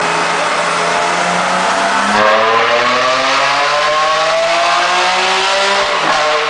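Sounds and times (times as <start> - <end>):
Ferrari engine: 0.0 - 6.4.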